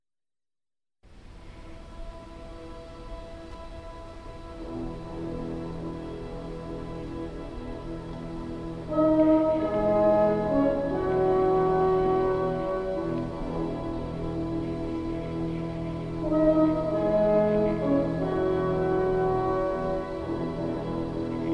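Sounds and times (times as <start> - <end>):
orchestra playing a prelude: 4.5 - 21.5.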